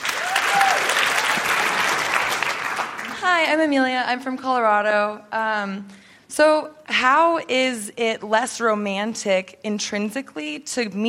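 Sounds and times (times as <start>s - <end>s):
audience applause in a large room: 0.0s - 3.2s
speech: 3.2s - 11.0s.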